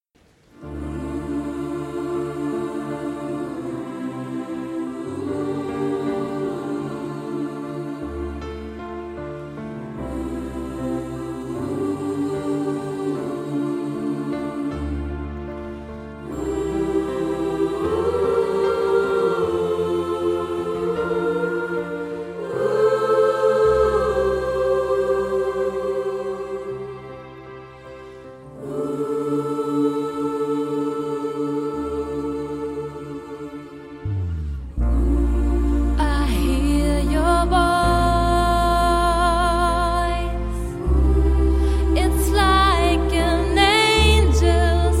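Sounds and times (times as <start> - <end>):
nineties gospel pop medley: 0.6 - 27.1, 28.0 - 44.9.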